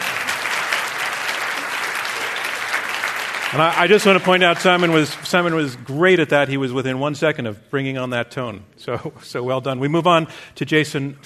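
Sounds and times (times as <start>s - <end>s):
audience applause: 0.0s - 5.9s
speech: 3.5s - 11.2s.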